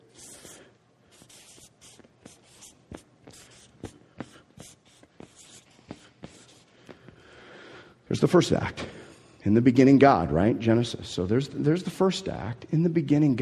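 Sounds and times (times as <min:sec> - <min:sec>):
writing on a board: 0:00.0 - 0:07.0
speech: 0:08.2 - 0:13.4.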